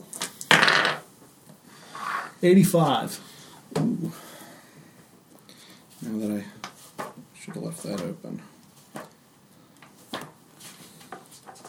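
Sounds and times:
d100 die clattering across a hard surface: 0:00.5 - 0:01.1
speech: 0:02.4 - 0:04.3, 0:06.0 - 0:06.6, 0:07.4 - 0:08.5.

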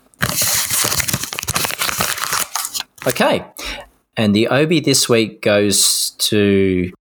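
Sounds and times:
envelope paper crinkling and tearing as it is peeled off a painted wall: 0:00.0 - 0:03.3
speech: 0:03.0 - 0:03.6, 0:04.2 - 0:07.0.

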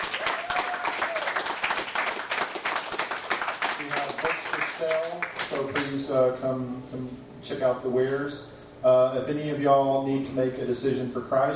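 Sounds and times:
audience applause for the readers: 0:00.0 - 0:05.9
speech: 0:05.1 - 0:11.5.

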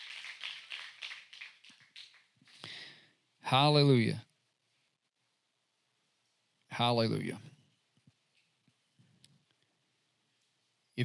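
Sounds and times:
audience hand clapping: 0:00.0 - 0:02.7
speech: 0:03.5 - 0:04.3, 0:06.8 - 0:07.6.

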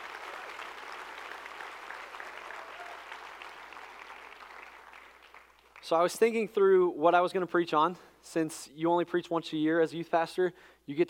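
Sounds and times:
audience applause for the band: 0:00.0 - 0:05.8
speech: 0:05.9 - 0:11.0.

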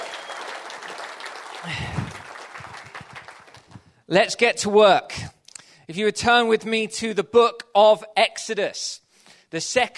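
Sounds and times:
audience applause: 0:00.0 - 0:03.8
speech: 0:01.6 - 0:02.2, 0:04.1 - 0:09.9.

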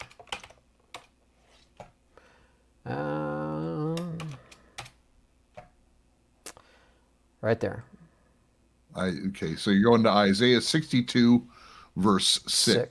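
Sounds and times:
keystrokes clattering on a computer keyboard: 0:00.0 - 0:01.2, 0:04.0 - 0:05.0
sustained voice: 0:02.8 - 0:04.4
speech: 0:07.4 - 0:08.0, 0:09.0 - 0:12.8.

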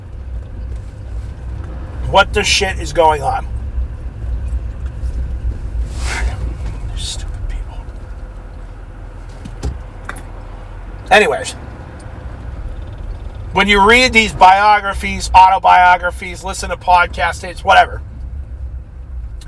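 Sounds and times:
road traffic: 0:00.0 - 0:19.4
speech: 0:02.1 - 0:03.5, 0:07.0 - 0:07.3, 0:11.1 - 0:11.6, 0:13.6 - 0:18.1.

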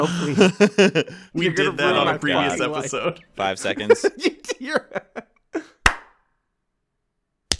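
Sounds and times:
speech: 0:00.0 - 0:05.7
laughter: 0:00.0 - 0:05.8
hand clap for audio sync: 0:05.8 - 0:06.2.

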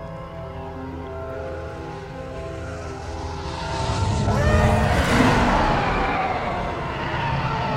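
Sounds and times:
TIE fighters approaching and roaring past: 0:01.5 - 0:07.7.

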